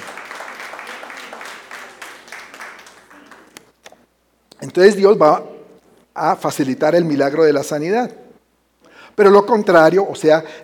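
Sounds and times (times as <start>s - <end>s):
audience applause: 0.0s - 3.6s
speech: 4.6s - 5.5s, 6.2s - 8.2s, 9.2s - 10.6s.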